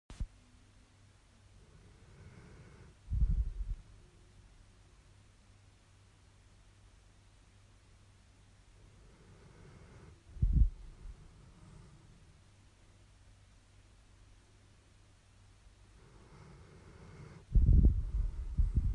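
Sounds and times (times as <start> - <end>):
dog snoring with a low rough rumbling snore: 1.6 - 3.6, 8.8 - 12.3, 16.0 - 18.9.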